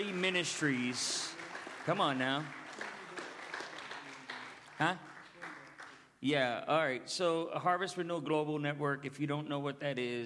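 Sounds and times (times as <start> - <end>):
speech: 0.0 - 2.6, 4.8 - 5.1, 6.2 - 10.2
audience hand clapping: 0.0 - 6.1.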